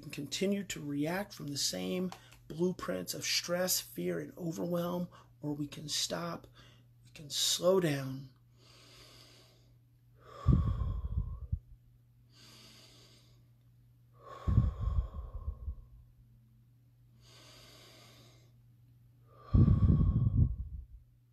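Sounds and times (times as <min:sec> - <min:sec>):
speech: 0:00.1 - 0:08.4
deep breathing: 0:08.5 - 0:16.1, 0:17.1 - 0:18.6, 0:19.2 - 0:21.0.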